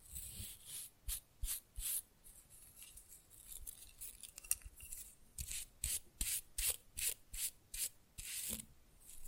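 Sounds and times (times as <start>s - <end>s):
fast rough nail filing: 0.2s - 2.0s, 4.9s - 8.6s.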